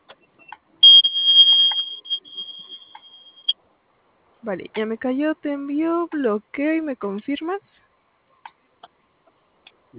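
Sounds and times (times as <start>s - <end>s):
vehicle panic button alarm: 0.8s - 3.5s
speech: 4.4s - 7.8s.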